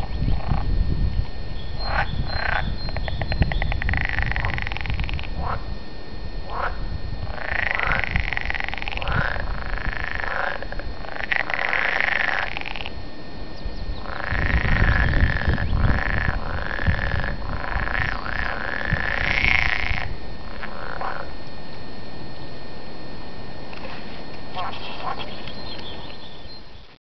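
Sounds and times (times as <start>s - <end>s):
frog croaking low and rumbling: 0.0s - 5.8s, 6.4s - 21.4s, 23.7s - 26.9s.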